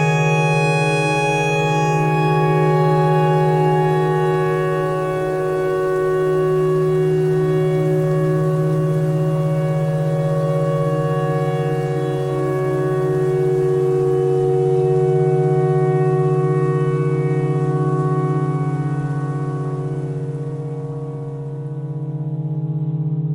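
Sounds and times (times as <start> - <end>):
clarinet notes: 0.0 - 20.9
tornado siren: 0.0 - 23.2.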